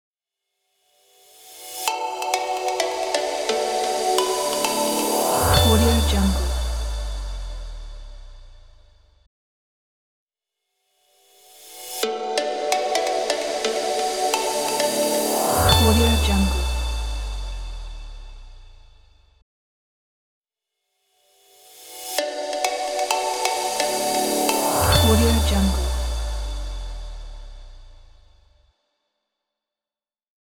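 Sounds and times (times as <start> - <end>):
tech logo jingle: 1.9 - 8.7, 12.1 - 18.8, 22.4 - 28.1.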